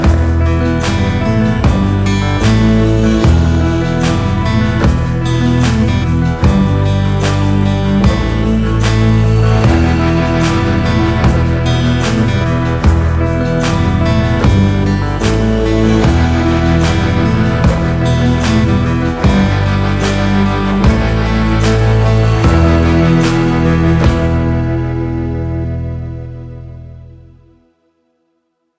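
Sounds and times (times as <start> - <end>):
dark western music: 0.0 - 27.6.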